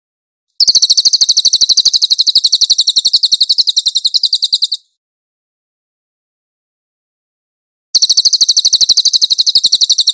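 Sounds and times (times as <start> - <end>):
Cililin singing a buzzy trill: 0.6 - 4.9, 8.0 - 10.1.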